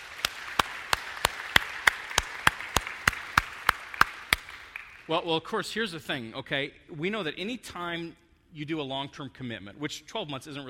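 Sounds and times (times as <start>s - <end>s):
audience hand clapping: 0.0s - 5.1s
speech: 5.1s - 10.6s.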